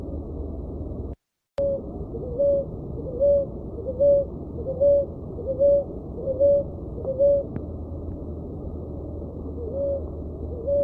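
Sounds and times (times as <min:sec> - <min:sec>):
dove uttering short mellow hoot-like notes: 0:01.6 - 0:07.6, 0:09.5 - 0:10.8.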